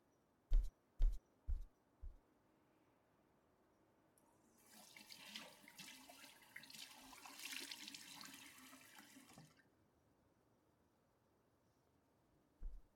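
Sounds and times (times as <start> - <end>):
soft low thuds: 0.5 - 2.2, 12.6 - 12.9
water running at a sink while washing face: 4.6 - 9.6.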